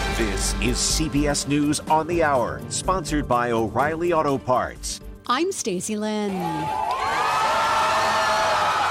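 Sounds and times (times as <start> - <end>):
speech: 0.2 - 7.1
crowd cheering in Tel Aviv as Hamas releases Israeli hostages: 6.3 - 8.8.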